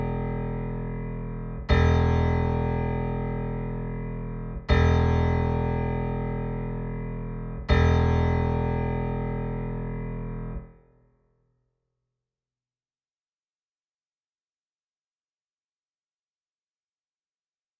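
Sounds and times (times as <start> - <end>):
bass tuning tones: 0.0 - 10.6.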